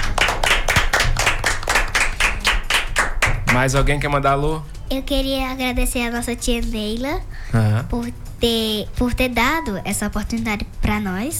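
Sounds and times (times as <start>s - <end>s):
audience clapping: 0.0s - 4.0s
speech: 3.6s - 11.3s.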